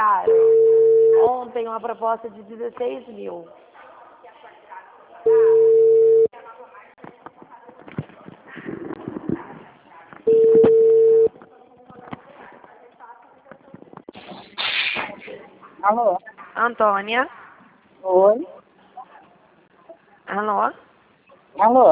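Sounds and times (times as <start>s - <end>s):
telephone line tone beeps after a dropped call: 0.3s - 1.3s, 5.3s - 6.3s, 10.3s - 11.3s
speech: 1.5s - 3.7s, 15.9s - 17.4s, 18.0s - 18.6s, 20.3s - 20.8s, 21.6s - 21.9s
hiss burst: 14.2s - 15.2s.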